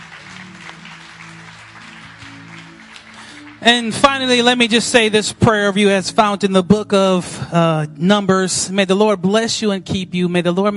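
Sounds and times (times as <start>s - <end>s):
audience applauding: 0.0s - 4.8s
speech: 3.6s - 10.7s.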